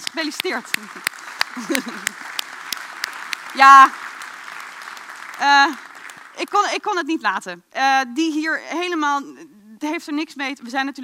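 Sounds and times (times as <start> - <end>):
applause: 0.0 - 7.0
speech: 0.1 - 2.4, 3.6 - 4.0, 5.4 - 5.8, 6.4 - 11.0
laughter: 0.8 - 2.4.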